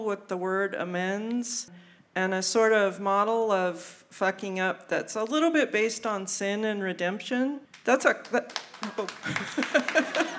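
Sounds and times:
speech: 0:00.0 - 0:10.2
audience applauding: 0:08.5 - 0:10.3
audience laughing: 0:09.1 - 0:10.3.

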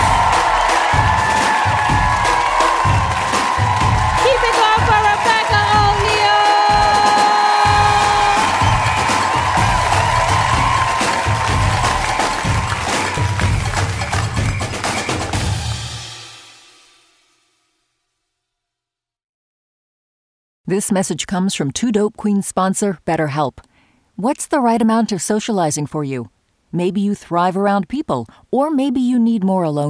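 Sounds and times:
audience applause: 0:00.0 - 0:15.8
speech: 0:20.7 - 0:29.8.

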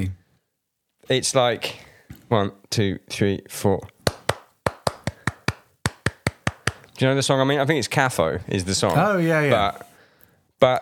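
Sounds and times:
speech: 0:01.1 - 0:04.0, 0:07.0 - 0:09.9, 0:10.6 - 0:10.8
hand claps in a syncopated rhythm: 0:04.0 - 0:06.9.

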